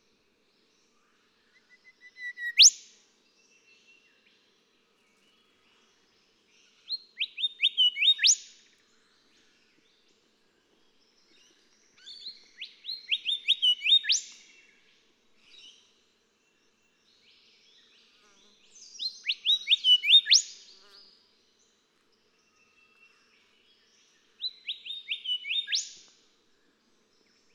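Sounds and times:
golden whistler singing: 1.7 - 2.8, 7.2 - 8.4, 12.6 - 14.4, 19.2 - 20.5, 24.5 - 26.0.

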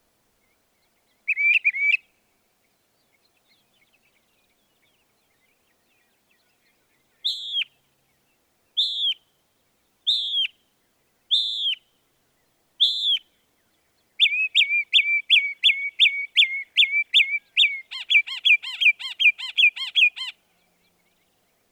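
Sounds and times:
Northern mockingbird whistled song: 1.2 - 2.1, 3.5 - 7.8, 8.7 - 9.3, 10.0 - 10.6, 11.3 - 21.3.

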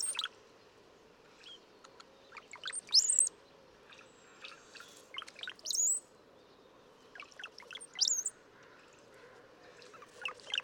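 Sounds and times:
brown-headed cowbird song: 0.0 - 0.3, 1.4 - 3.4, 4.8 - 8.4, 9.9 - 10.6.

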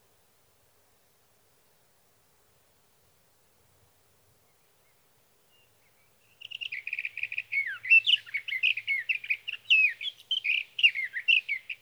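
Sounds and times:
sage thrasher song: 5.5 - 11.8.

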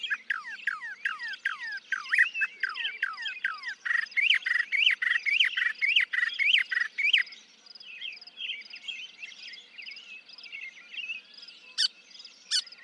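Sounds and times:
Northern mockingbird singing: 0.0 - 12.8.

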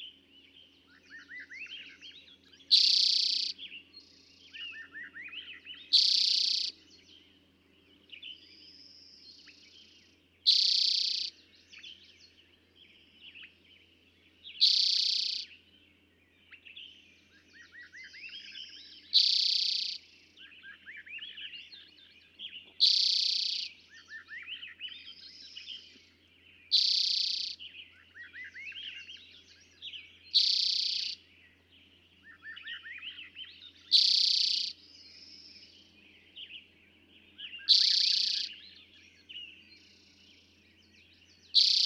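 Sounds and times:
other small birds chattering and chirping: 0.0 - 41.8
Eastern towhee singing trills: 2.7 - 3.6, 5.9 - 6.7, 10.5 - 11.3, 14.6 - 15.5, 19.2 - 20.0, 22.8 - 23.7, 26.7 - 27.6, 30.4 - 31.2, 33.9 - 34.8, 37.7 - 38.5, 41.6 - 41.8.

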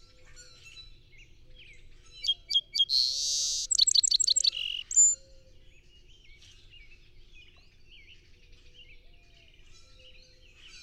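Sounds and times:
song sparrow song of whistles buzzes and trill: 2.2 - 5.2.

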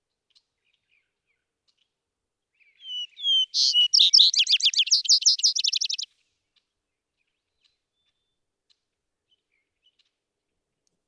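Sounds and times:
Vesper sparrow song: 2.8 - 6.1.

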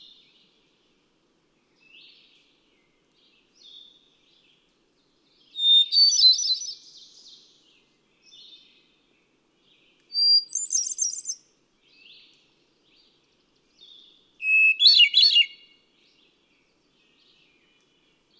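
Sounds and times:
Hermit Thrush: 1.6 - 18.3.

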